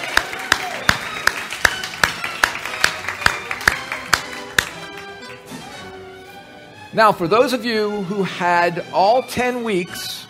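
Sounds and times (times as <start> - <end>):
rhythmic clapping for graduates: 0.0 - 5.5
speech: 7.0 - 10.2.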